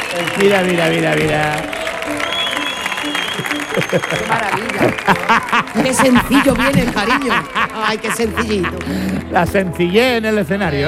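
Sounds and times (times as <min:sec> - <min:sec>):
audience applause: 0:00.0 - 0:09.8
speech: 0:00.1 - 0:02.2, 0:03.0 - 0:10.8
laughter: 0:02.8 - 0:09.6.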